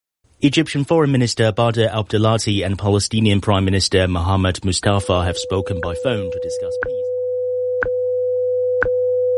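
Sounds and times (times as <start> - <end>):
speech: 0.4 - 7.1
radio time signal tone at top of hour: 4.9 - 9.2.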